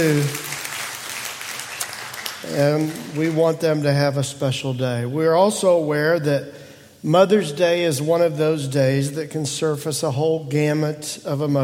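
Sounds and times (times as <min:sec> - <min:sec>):
speech: 0:00.0 - 0:00.4, 0:02.4 - 0:11.6
audience applause: 0:00.0 - 0:03.4.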